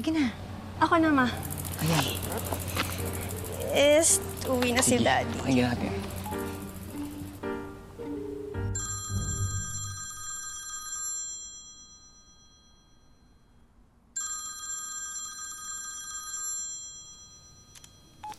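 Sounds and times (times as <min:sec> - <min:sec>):
speech: 0:00.0 - 0:06.1
telephone ringing with electronic ring bursts: 0:08.8 - 0:12.9, 0:14.2 - 0:18.3.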